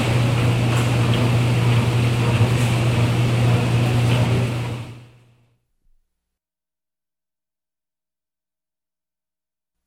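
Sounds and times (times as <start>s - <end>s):
noisy machinery in workshop: 0.0s - 5.1s.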